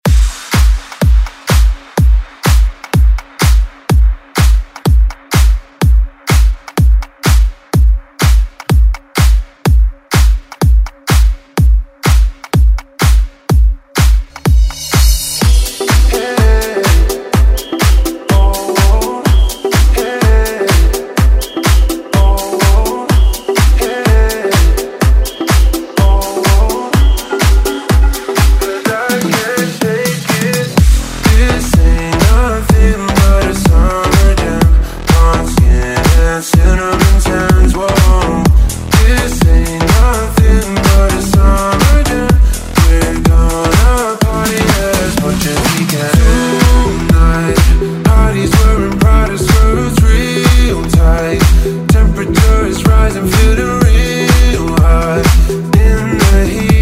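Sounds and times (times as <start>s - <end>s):
pop dance music: 0.0s - 56.7s.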